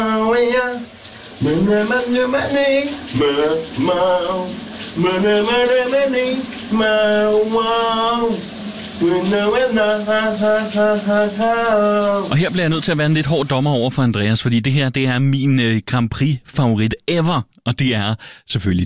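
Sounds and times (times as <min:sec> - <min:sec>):
man singing loudly in the shower: 0:00.0 - 0:13.6
shower running in a bathroom: 0:00.0 - 0:13.8
speech: 0:01.4 - 0:18.8.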